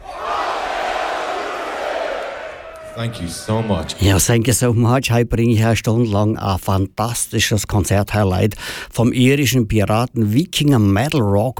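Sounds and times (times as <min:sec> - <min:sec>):
large festival crowd shouting a chant: 0:00.0 - 0:04.2
speech: 0:03.0 - 0:11.5.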